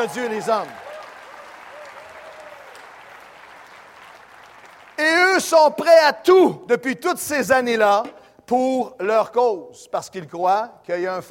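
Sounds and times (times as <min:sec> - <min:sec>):
speech: 0:00.0 - 0:00.8, 0:05.0 - 0:11.3
audience applause: 0:00.0 - 0:05.2.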